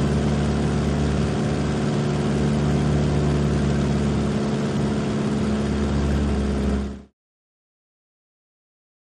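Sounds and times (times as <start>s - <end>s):
Tiger Moth engine starting, revving and idling: 0.0s - 7.1s.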